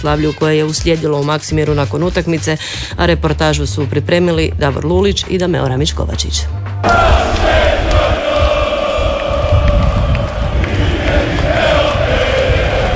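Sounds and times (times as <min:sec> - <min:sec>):
speech: 0:00.0 - 0:07.4
football fans cheering and chanting in stadium: 0:06.2 - 0:12.9.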